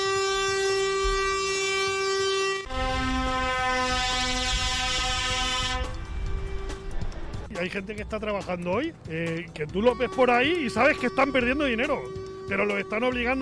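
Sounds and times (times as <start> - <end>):
protesting trucks' air horns blaring on a highway: 0.0 - 7.5, 9.6 - 13.4
rumbling engine and traffic: 4.6 - 13.4
speech: 7.6 - 13.4.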